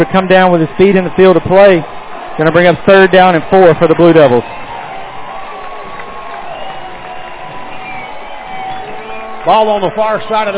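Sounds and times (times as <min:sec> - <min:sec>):
speech: 0:00.0 - 0:04.6, 0:09.5 - 0:10.5
stadium crowd cheering: 0:00.0 - 0:10.5.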